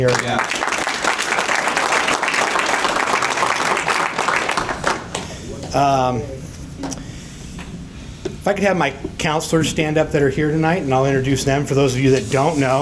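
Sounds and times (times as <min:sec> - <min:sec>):
speech: 0:00.0 - 0:00.6, 0:05.7 - 0:06.9, 0:08.4 - 0:12.7
round of applause: 0:00.0 - 0:05.4.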